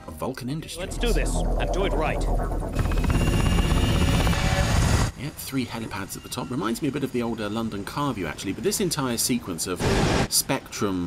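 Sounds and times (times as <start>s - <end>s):
speech: 0.2s - 3.7s, 4.5s - 11.0s
helicopters flying over a city: 0.7s - 5.1s.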